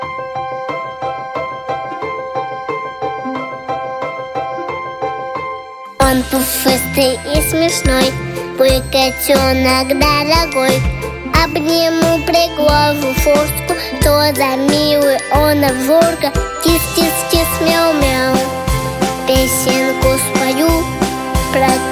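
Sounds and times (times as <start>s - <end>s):
song: 0.3s - 21.9s.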